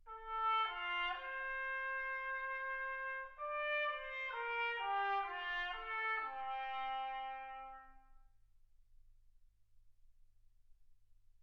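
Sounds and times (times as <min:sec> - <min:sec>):
trumpet: 0:00.1 - 0:08.3.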